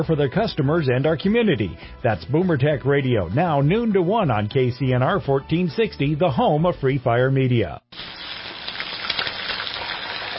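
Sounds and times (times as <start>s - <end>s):
speech: 0.0s - 7.9s
turkey deep frying in cooking oil: 7.9s - 10.3s.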